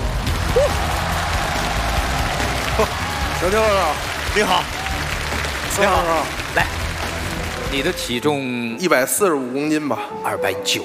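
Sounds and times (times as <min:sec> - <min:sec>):
audience applause: 0:00.0 - 0:08.2
speech: 0:02.8 - 0:04.8, 0:05.8 - 0:06.8, 0:07.7 - 0:10.8.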